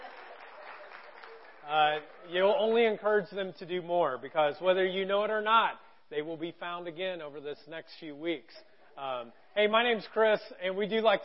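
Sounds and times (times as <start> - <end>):
audience clapping: 0.0 - 2.9
speech: 1.7 - 11.2.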